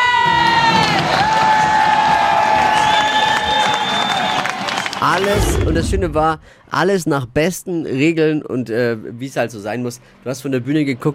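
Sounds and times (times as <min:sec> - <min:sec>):
crowd cheering at fan park: 0:00.0 - 0:06.5
speech: 0:05.0 - 0:11.1.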